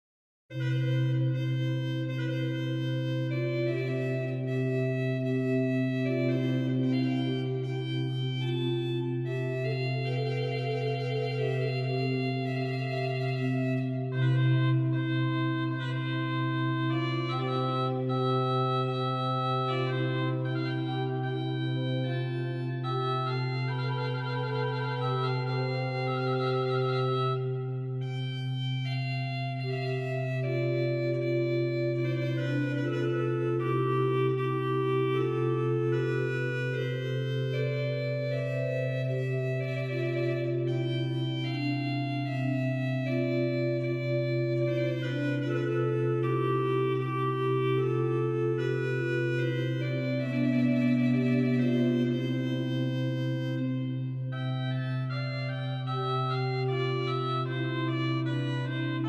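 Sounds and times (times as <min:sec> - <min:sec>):
organ music in Souvigny: 0:00.6 - 0:59.0.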